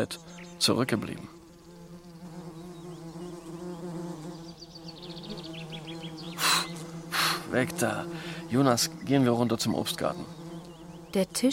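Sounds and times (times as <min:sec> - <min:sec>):
speech: 0:00.0 - 0:01.4, 0:07.5 - 0:10.4, 0:11.1 - 0:11.5
faint birds chirping: 0:00.0 - 0:11.5
wasps buzzing around leftover fig bread on a table: 0:00.0 - 0:11.5.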